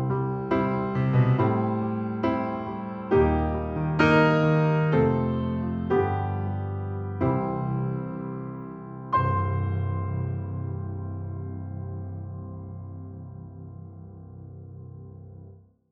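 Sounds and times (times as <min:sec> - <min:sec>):
Steinway B grand piano: 0:00.0 - 0:15.6.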